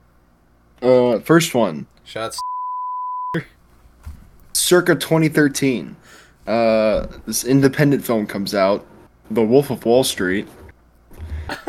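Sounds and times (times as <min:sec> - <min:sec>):
speech: 0:00.8 - 0:02.5, 0:03.3 - 0:03.6, 0:04.6 - 0:10.6
censorship bleep tone: 0:02.4 - 0:03.4
laughter: 0:11.2 - 0:11.6.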